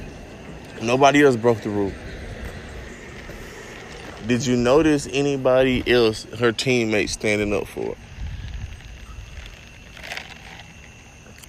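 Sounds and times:
speech: 0.8s - 2.0s, 4.2s - 8.0s
person chewing ice: 8.2s - 11.4s.

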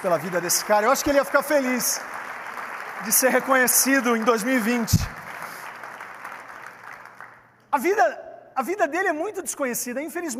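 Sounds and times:
speech: 0.0s - 2.2s, 3.0s - 5.2s, 7.8s - 10.3s
audience applauding: 0.0s - 7.5s.

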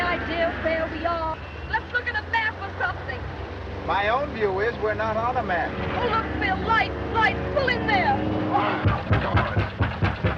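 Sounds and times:
speech: 0.2s - 3.2s, 3.9s - 9.7s
heavy knocking on a door: 8.8s - 10.3s.

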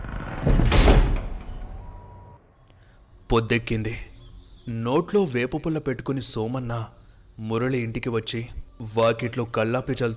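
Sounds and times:
house door shut firmly: 0.2s - 2.0s
speech: 3.3s - 4.1s, 4.7s - 10.1s.

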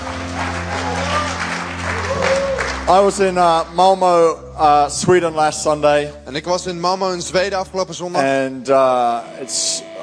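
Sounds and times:
audience at a church service applauding the band: 0.0s - 4.0s
speech: 2.9s - 10.0s.

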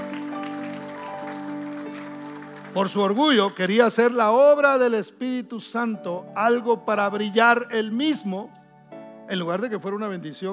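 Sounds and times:
crowd clapping: 0.0s - 4.4s
speech: 2.8s - 8.6s, 9.3s - 10.5s.

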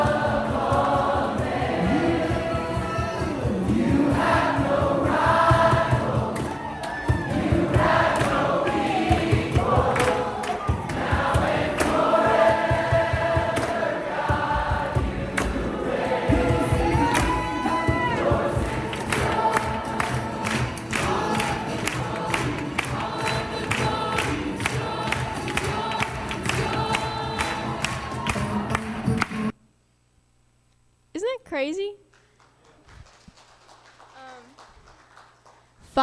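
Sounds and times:
crowd singing improvised worship: 0.0s - 29.5s
shouts: 6.4s - 7.4s, 16.8s - 18.4s.

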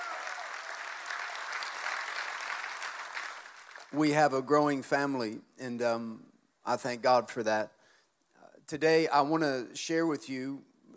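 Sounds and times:
audience clapping: 0.0s - 4.2s
speech: 3.9s - 7.8s, 8.7s - 10.7s.

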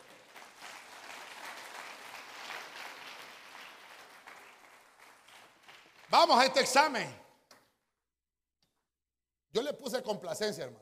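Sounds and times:
strong applause from audience: 0.0s - 6.4s
speech: 6.1s - 7.2s, 10.1s - 10.8s.

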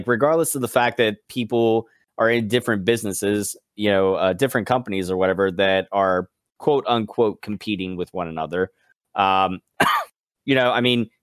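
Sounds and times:
speech: 0.0s - 11.2s
loud harsh cough: 9.8s - 10.2s.

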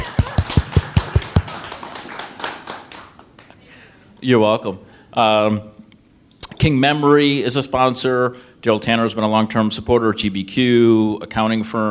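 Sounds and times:
audience applause: 0.0s - 3.5s
speech: 4.2s - 5.8s, 6.6s - 11.8s.

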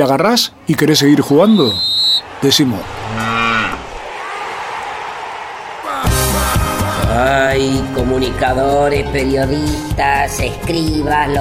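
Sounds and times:
speech: 0.0s - 3.6s, 7.6s - 11.3s
steady noise: 0.0s - 11.3s
cow mooing: 2.8s - 3.9s.

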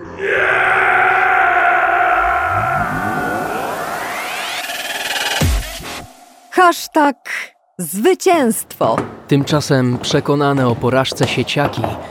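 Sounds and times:
eerie howling wail in darkness: 0.0s - 5.5s
speech: 6.6s - 12.0s.

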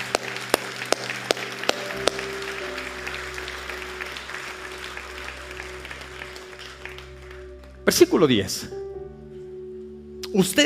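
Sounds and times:
audience clapping loudly: 0.0s - 8.2s
speech: 7.9s - 8.8s, 10.3s - 10.6s.

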